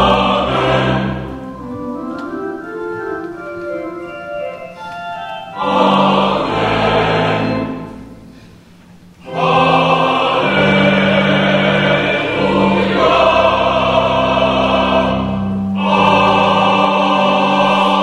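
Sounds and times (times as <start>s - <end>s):
choral singing: 0.0s - 1.8s, 5.5s - 8.4s, 9.2s - 18.0s.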